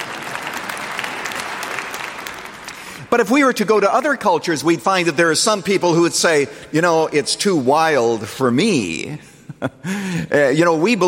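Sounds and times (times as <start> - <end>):
congregation clapping at Moody Church: 0.0 - 4.6
speech: 3.1 - 11.0.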